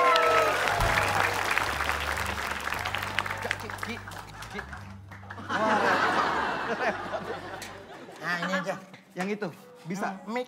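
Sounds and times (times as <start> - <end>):
applause from wedding guests: 0.0 - 5.4
laughter: 2.8 - 9.0
speech: 9.2 - 10.4.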